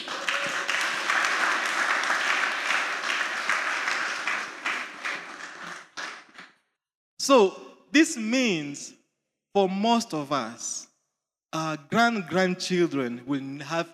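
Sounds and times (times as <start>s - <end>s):
audience clapping: 0.0s - 6.6s
speech: 7.2s - 9.0s, 9.6s - 10.9s, 11.5s - 13.9s.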